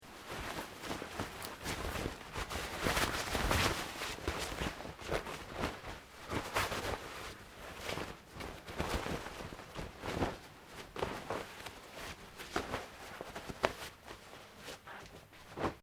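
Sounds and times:
nylon cloth movement: 0.0s - 15.8s.

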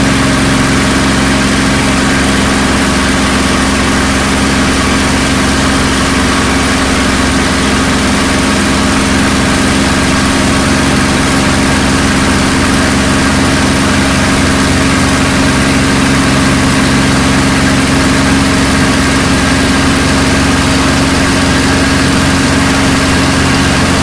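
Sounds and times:
CAC CA-18 Mustang Mk23 aircraft flying heard from interior: 0.0s - 24.0s.

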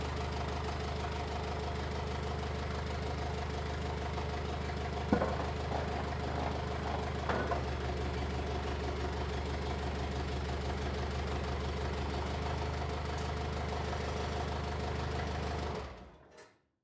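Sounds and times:
forklift starting, lifting and setting down a pallet: 0.0s - 16.5s.

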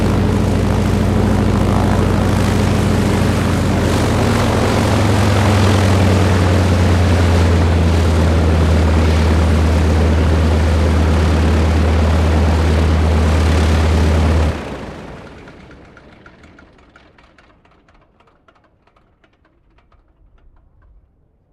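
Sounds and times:
CAC CA-25 Winjeel fighter trainer taxiing: 0.0s - 21.0s.

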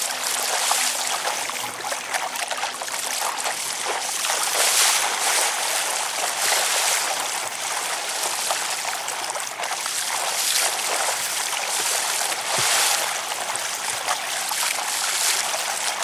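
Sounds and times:
very distant motor boats: 0.0s - 16.0s
windsurfing board on a constant run: 0.0s - 16.0s.

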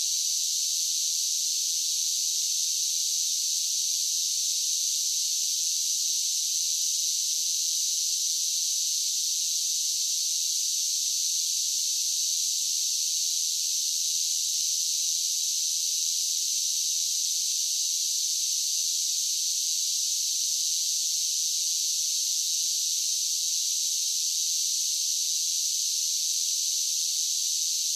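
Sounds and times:
large group of cicadas in a steady drone: 0.0s - 27.9s.

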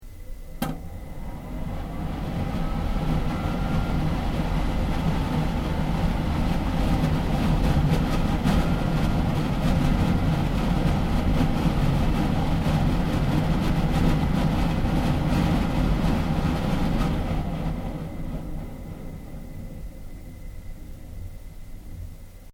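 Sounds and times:
exhaust fan switching on and off: 0.0s - 22.5s.

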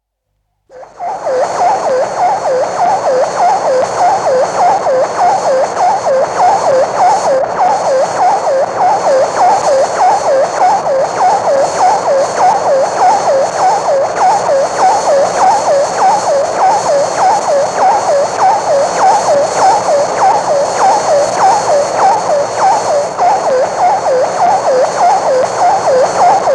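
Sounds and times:
Vanguard 3 satellite telemetry signals: 0.7s - 26.5s.

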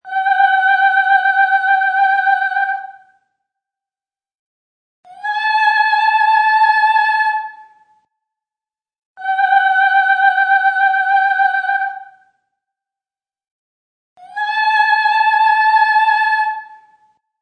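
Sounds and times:
woman singing opera: 0.0s - 3.1s, 5.1s - 7.9s, 9.2s - 12.2s, 14.2s - 17.0s.

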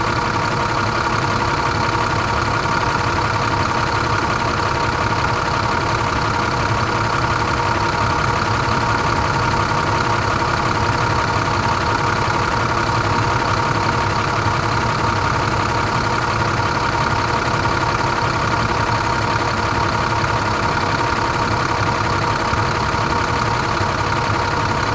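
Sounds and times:
fire truck engine starting up, idling and shutting off: 0.0s - 24.9s.

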